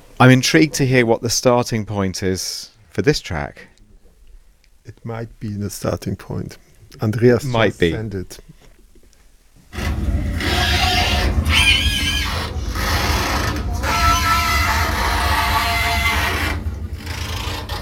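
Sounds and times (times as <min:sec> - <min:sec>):
speech: 0:00.2 - 0:03.7, 0:04.8 - 0:08.5
moving bridge over the Elbe River grinding and creaking: 0:09.6 - 0:17.8.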